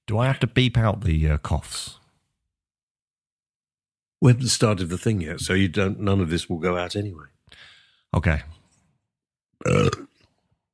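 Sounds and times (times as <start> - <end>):
speech: 0.1 - 2.0, 4.2 - 8.6, 9.6 - 10.1
faint breath: 7.5 - 8.1
burp after drinking coffee: 9.6 - 10.4.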